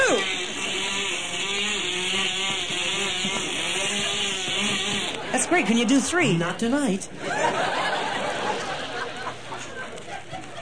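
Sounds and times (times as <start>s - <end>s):
two outboard motors racing: 0.0s - 6.0s
laughter: 4.0s - 10.6s
speech: 5.6s - 7.5s.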